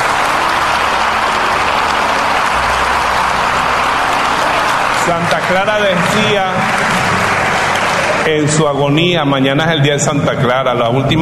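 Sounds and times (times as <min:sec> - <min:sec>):
crowd applauding: 0:00.0 - 0:10.6
speech: 0:05.1 - 0:07.0, 0:08.2 - 0:11.2.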